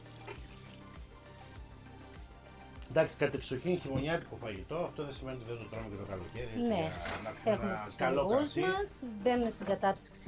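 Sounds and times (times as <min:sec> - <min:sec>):
wine poured into a simmering wild game stew: 0:00.0 - 0:01.7
speech: 0:02.9 - 0:10.2.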